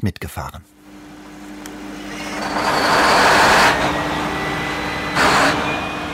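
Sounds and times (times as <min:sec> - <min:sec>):
ship engine starting: 0:02.0 - 0:06.1.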